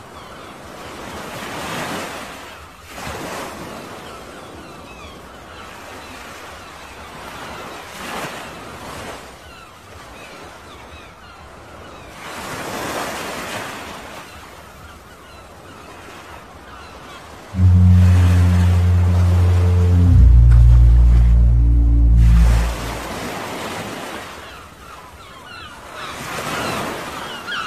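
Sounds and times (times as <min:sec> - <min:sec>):
sea waves washing in: 0:17.6 - 0:23.5.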